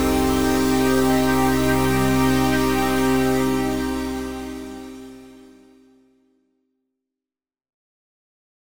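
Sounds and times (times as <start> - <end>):
high bright synth pad: 0.0 - 5.8.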